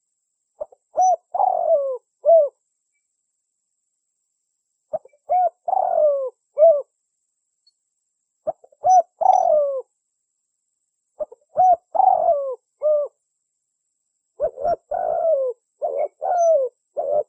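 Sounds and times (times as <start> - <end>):
Spotted Dove cooing as a lure call: 0.6 - 2.6, 4.9 - 6.9, 8.5 - 9.9, 11.2 - 13.2, 14.4 - 17.2.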